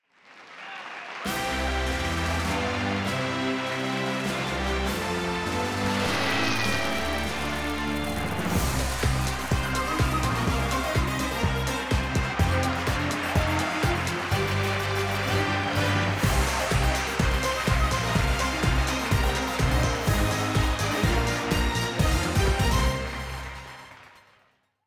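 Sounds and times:
intro fanfare: 1.3 - 24.4.

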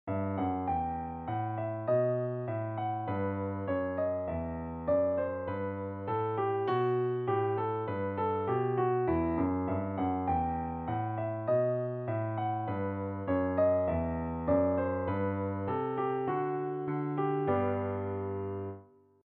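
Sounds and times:
bourree on piano: 0.0 - 19.0.

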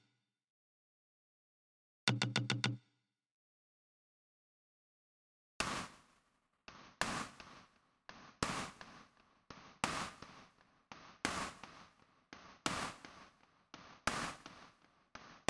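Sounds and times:
drums and percussion: 5.6 - 15.4.

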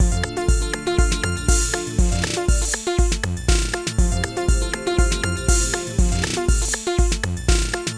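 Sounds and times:
electronic music: 0.0 - 7.9.

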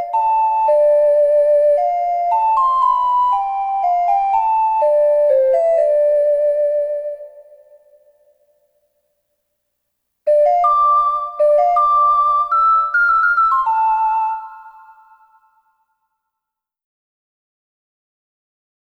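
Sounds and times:
ocarina melody: 0.0 - 7.9, 10.3 - 15.5.

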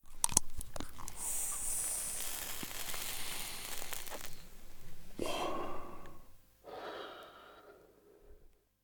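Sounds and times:
pipe: 0.0 - 6.3.

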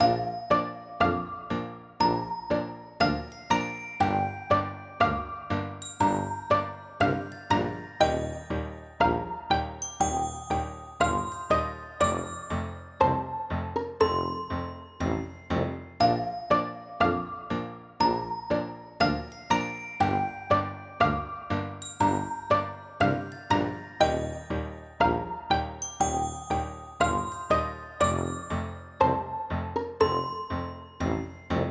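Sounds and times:
menu background music: 0.0 - 31.7.

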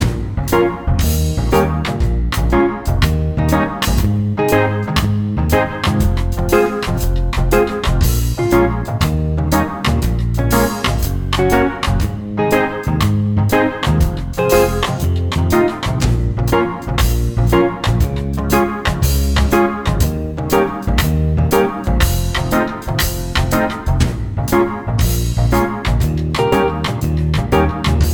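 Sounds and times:
reggae music: 0.0 - 28.1.

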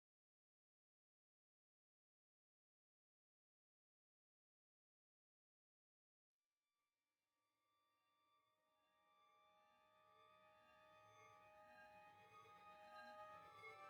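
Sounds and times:
synths and pads: 9.4 - 13.8.

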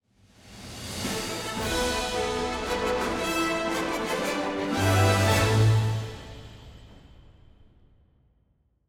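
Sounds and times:
game victory result jingle: 1.1 - 6.8.

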